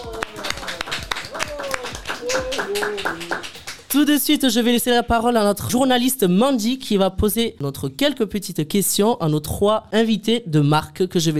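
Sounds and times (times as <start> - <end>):
voices calling out and cheering: 0.0 - 3.9
small group applauding: 0.0 - 4.7
speech: 2.6 - 11.3.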